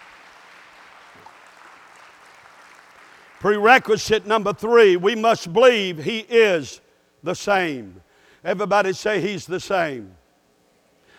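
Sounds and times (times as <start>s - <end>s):
crowd applauding: 0.0s - 3.8s
speech: 3.4s - 10.2s.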